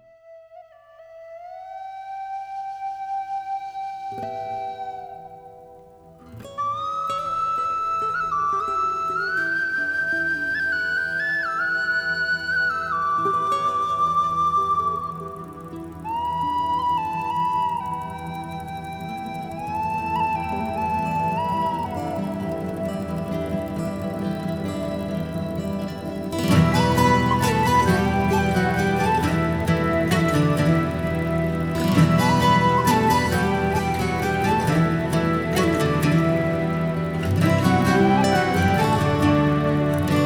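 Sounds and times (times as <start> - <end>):
Irish whistle blowing: 0.0 - 40.2.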